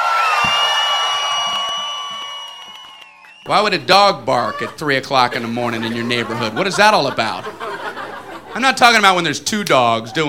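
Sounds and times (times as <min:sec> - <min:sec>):
high whistles: 0:00.0 - 0:03.6
crowd cheering with whoops and shouts: 0:00.0 - 0:09.1
speech: 0:03.5 - 0:07.6, 0:08.6 - 0:10.2
laughter: 0:04.0 - 0:09.2, 0:09.8 - 0:10.2.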